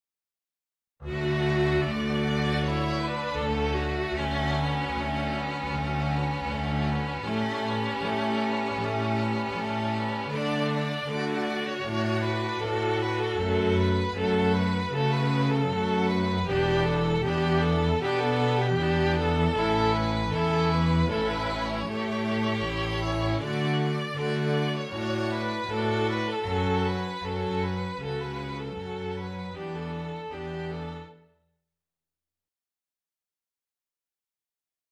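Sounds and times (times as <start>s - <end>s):
string orchestra: 1.0s - 31.2s.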